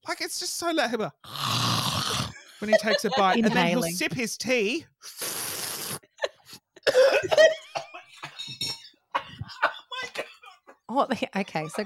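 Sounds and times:
speech: 0.1s - 1.7s, 2.6s - 5.3s, 11.0s - 11.8s
laughter: 2.4s - 4.2s, 7.2s - 11.8s
choking coughing fit: 6.2s - 10.9s.

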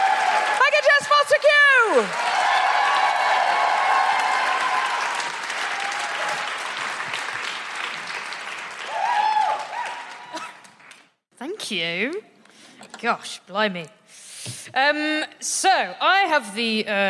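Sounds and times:
audience applause: 0.0s - 11.2s
speech: 13.0s - 14.0s, 14.7s - 17.0s.

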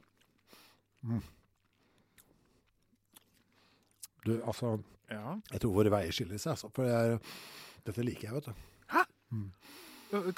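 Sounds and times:
person chewing sour candy: 0.0s - 4.3s
speech: 1.0s - 1.4s, 4.2s - 10.3s.

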